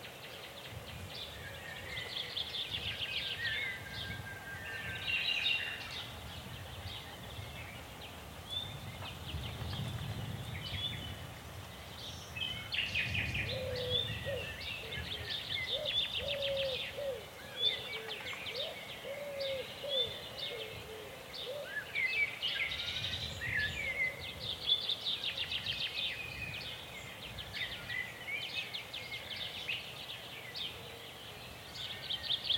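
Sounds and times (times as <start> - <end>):
natural biophony soundscape: 0.0 - 32.5.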